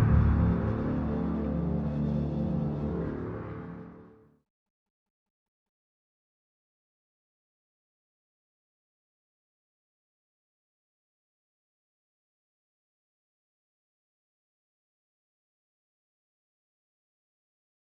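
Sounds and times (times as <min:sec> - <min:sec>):
atmosphere: 0:00.0 - 0:04.2.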